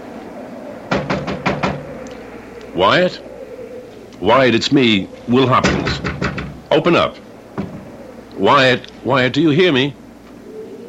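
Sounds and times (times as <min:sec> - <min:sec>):
knocking on a door: 0:00.9 - 0:01.8, 0:05.6 - 0:06.6, 0:07.6 - 0:07.9
speech: 0:02.8 - 0:03.3, 0:04.2 - 0:07.2, 0:08.4 - 0:10.0.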